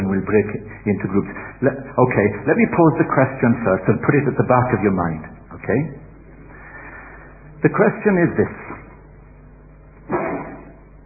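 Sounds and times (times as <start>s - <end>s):
speech: 0.2s - 6.0s, 7.6s - 8.8s
sneeze: 10.1s - 10.8s.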